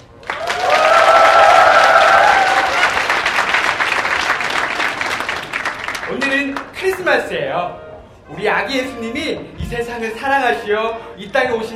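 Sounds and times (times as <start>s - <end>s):
church audience applauding at a Christmas program: 0.0s - 6.7s
shouted cheers from church audience: 0.3s - 3.1s
speech: 7.1s - 11.7s.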